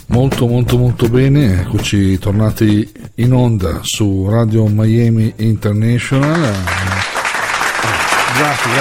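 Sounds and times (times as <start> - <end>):
speech: 0.2 - 7.0, 8.4 - 8.7
applause: 6.2 - 8.7.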